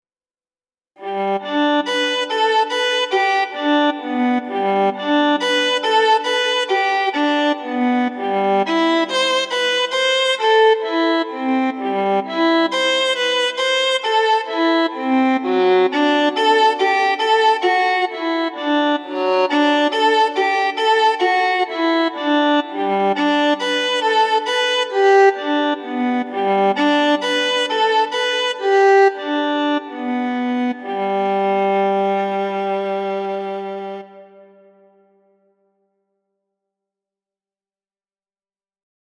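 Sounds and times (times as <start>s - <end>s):
viola: 1.0s - 35.1s.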